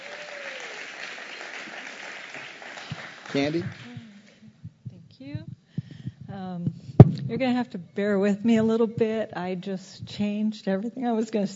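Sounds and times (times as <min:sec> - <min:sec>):
church congregation applauding to welcome a new member: 0:00.0 - 0:04.0
speech: 0:03.3 - 0:03.9, 0:07.3 - 0:11.5.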